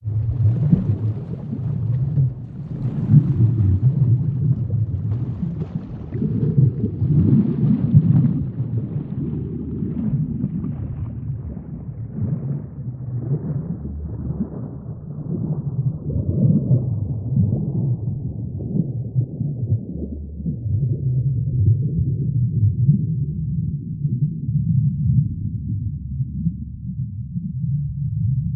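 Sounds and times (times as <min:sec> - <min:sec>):
sinking in the sea: 0:00.0 - 0:28.4.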